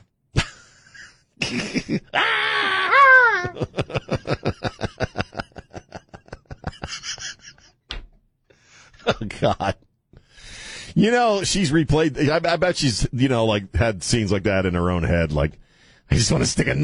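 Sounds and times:
laughter: 0:00.4 - 0:07.8, 0:09.0 - 0:09.9
speech: 0:01.5 - 0:02.4, 0:09.4 - 0:09.8, 0:11.0 - 0:16.8
Wilhelm scream sound effect: 0:02.1 - 0:03.6.

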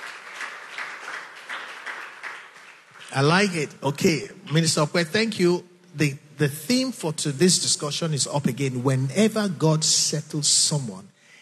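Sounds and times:
audience clapping: 0:00.0 - 0:05.0
speech: 0:03.1 - 0:11.2.

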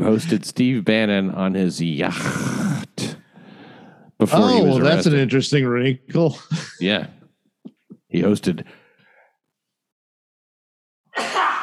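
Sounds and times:
speech: 0:00.1 - 0:02.7, 0:04.2 - 0:07.2, 0:08.1 - 0:08.8
sneeze: 0:11.1 - 0:11.6.

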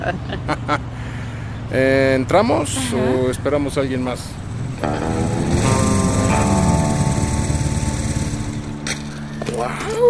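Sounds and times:
speech: 0:00.0 - 0:00.9, 0:01.7 - 0:05.6, 0:09.6 - 0:10.0
motorcycle engine arriving: 0:02.5 - 0:09.6.

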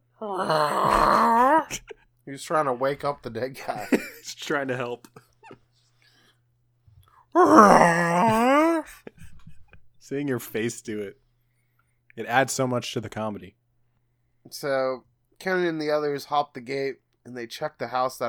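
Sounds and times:
speech: 0:00.2 - 0:01.0, 0:01.8 - 0:05.6, 0:07.4 - 0:08.9, 0:10.1 - 0:11.2, 0:12.2 - 0:13.6, 0:14.4 - 0:18.2
voice imitating a cat's weird meow: 0:00.2 - 0:01.8, 0:07.4 - 0:08.9.

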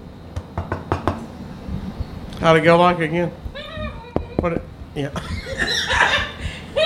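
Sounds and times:
knocking on a door: 0:00.4 - 0:01.2, 0:04.1 - 0:04.7
speech: 0:02.4 - 0:03.4, 0:04.4 - 0:05.6
laughter: 0:05.2 - 0:06.8.

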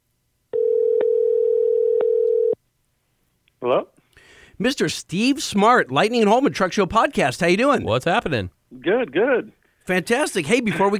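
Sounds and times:
telephone dial tone while calling: 0:00.6 - 0:02.6
speech: 0:03.6 - 0:03.9, 0:04.6 - 0:10.9.

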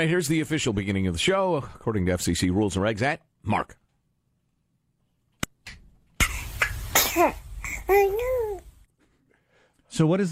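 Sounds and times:
speech: 0:00.0 - 0:03.8, 0:07.2 - 0:08.5, 0:09.9 - 0:10.3
baby sneezing: 0:06.2 - 0:08.6.

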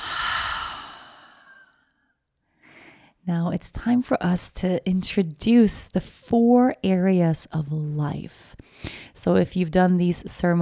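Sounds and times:
brief inhale: 0:00.0 - 0:01.7, 0:02.6 - 0:03.2
long slow breath out during a guided reflection exercise: 0:00.0 - 0:01.9, 0:02.5 - 0:03.2
speech: 0:03.2 - 0:10.6.

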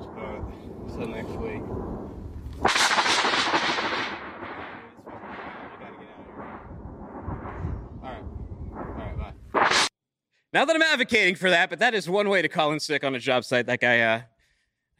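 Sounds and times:
thunder and lightning strike: 0:00.0 - 0:09.9
speech: 0:01.0 - 0:02.8, 0:10.6 - 0:14.3.

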